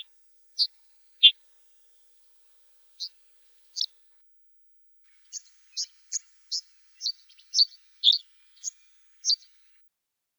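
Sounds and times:
red-headed bunting voice: 5.3s - 9.5s.

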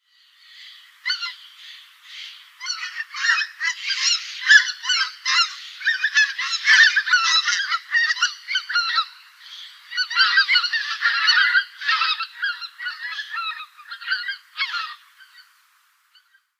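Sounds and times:
white-fronted goose calling: 1.0s - 15.5s.

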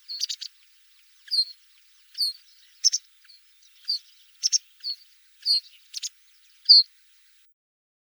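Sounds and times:
masked wagtail calling: 0.0s - 7.5s.

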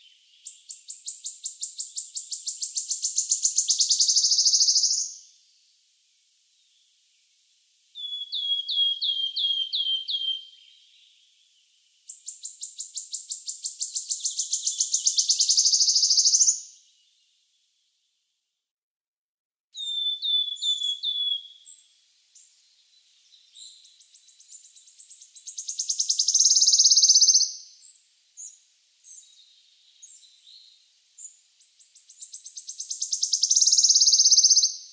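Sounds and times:
wood warbler singing: 0.0s - 5.3s, 8.0s - 17.4s, 19.8s - 34.9s.

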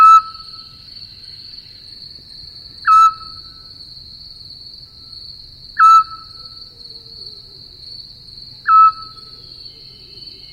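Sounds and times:
scops owl calling: 0.0s - 0.7s, 2.8s - 3.6s, 5.8s - 7.6s, 8.6s - 10.5s.

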